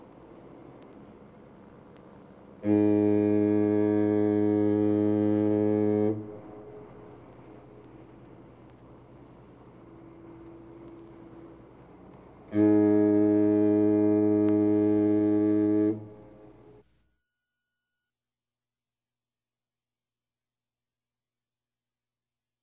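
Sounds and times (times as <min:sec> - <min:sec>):
ship horn: 0:02.6 - 0:08.2, 0:09.7 - 0:16.9.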